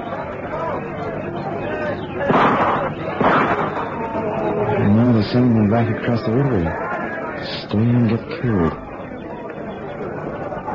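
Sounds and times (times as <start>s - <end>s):
crowd shouting and arguing: 0.0s - 10.7s
speech: 5.3s - 8.8s.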